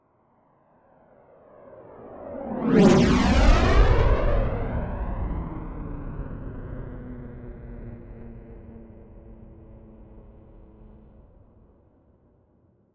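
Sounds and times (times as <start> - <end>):
military FA-18 Hornet jet turbine flyby fast close: 1.9 - 8.7.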